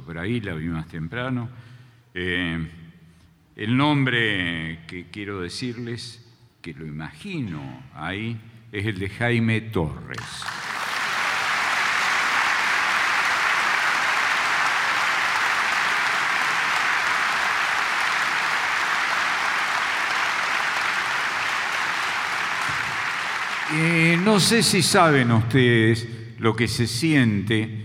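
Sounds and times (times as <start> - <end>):
speech: 0.1 - 2.8, 3.6 - 10.6, 23.7 - 27.8
audience applause: 10.2 - 25.0.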